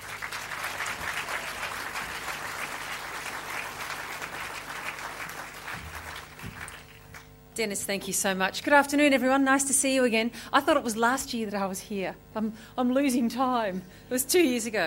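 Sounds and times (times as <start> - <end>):
audience applause welcoming a speaker to the stage: 0.0 - 7.3
speech: 7.6 - 14.8.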